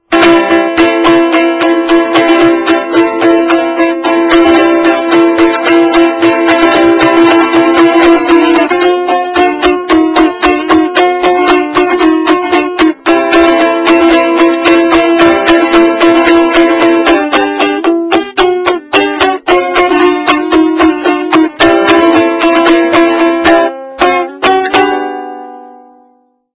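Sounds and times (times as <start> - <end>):
boogie music: 0.0 - 25.9.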